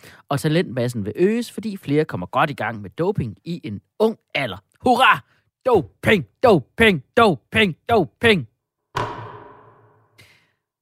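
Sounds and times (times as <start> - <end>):
speech: 0.3 - 8.5
gavel striking with a sharp wooden crack: 8.9 - 10.3.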